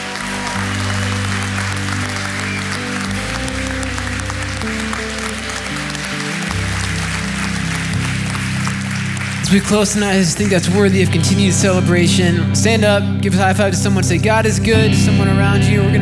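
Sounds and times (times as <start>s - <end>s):
cheering: 0.0s - 10.9s
audience applauding: 0.0s - 12.0s
sustained low musical chords: 0.0s - 15.9s
whistles: 2.1s - 3.9s
speech: 9.5s - 15.9s.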